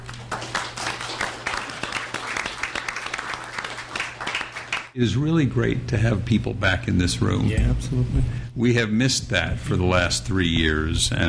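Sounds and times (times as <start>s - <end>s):
applause in City Council chambers: 0.0s - 5.0s
speech: 5.0s - 11.2s.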